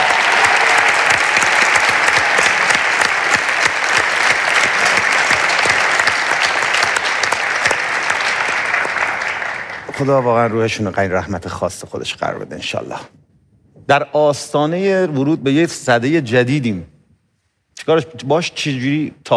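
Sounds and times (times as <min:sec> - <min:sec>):
audience applause in tribute to a late actor: 0:00.0 - 0:11.0
speech: 0:10.0 - 0:13.2, 0:13.9 - 0:16.9, 0:17.8 - 0:19.3.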